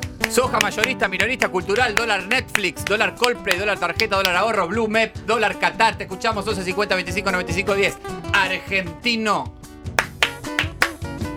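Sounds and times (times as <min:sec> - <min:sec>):
person clapping hands: 0:00.0 - 0:04.5, 0:09.9 - 0:11.3
speech: 0:00.3 - 0:09.6.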